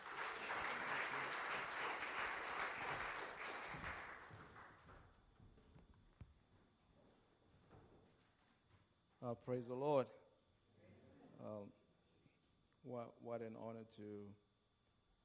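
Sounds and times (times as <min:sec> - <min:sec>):
church congregation applauding a speaker during a service: 0:00.0 - 0:05.2
speech: 0:09.3 - 0:10.2, 0:12.9 - 0:14.4.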